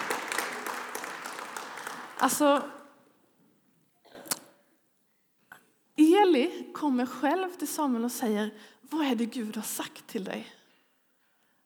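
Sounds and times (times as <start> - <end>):
audience applause: 0.0 - 2.7
speech: 2.2 - 2.8, 6.4 - 10.6.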